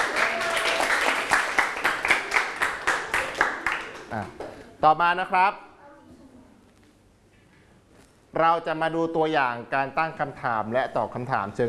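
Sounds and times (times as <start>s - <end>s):
classroom applause: 0.0s - 4.6s
speech: 4.8s - 5.6s, 8.4s - 11.6s.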